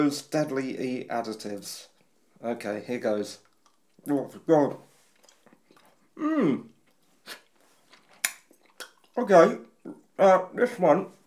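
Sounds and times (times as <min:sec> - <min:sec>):
speech: 0:00.0 - 0:04.9, 0:06.2 - 0:06.7, 0:09.2 - 0:11.2
person chewing a chewy sweet: 0:03.2 - 0:10.2
person murmuring: 0:06.2 - 0:06.7.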